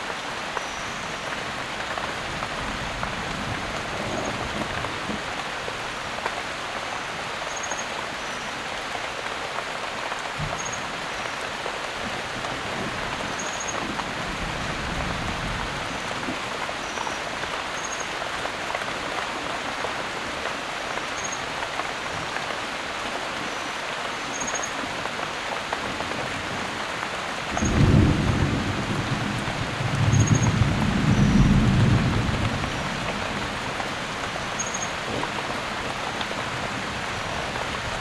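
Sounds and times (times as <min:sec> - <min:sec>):
heavy downpour: 0:00.0 - 0:37.9
thunder: 0:27.6 - 0:33.4.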